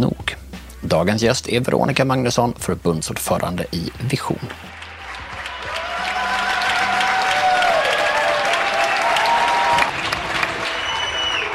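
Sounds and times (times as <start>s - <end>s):
speech: 0.9s - 4.7s
residents clapping from balconies in Spain during the coronavirus lockdown: 4.5s - 11.5s
scattered cheers: 4.7s - 11.5s.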